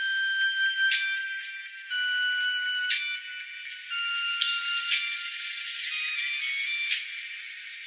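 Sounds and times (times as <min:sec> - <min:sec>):
electronic whine loop: 0:00.0 - 0:07.8.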